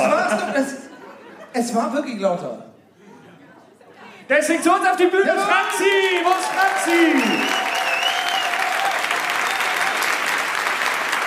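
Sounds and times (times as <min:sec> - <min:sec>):
laughter: 0:00.0 - 0:02.0, 0:02.8 - 0:04.3
speech: 0:01.6 - 0:02.7, 0:04.3 - 0:07.6
crowd clapping: 0:04.8 - 0:11.2.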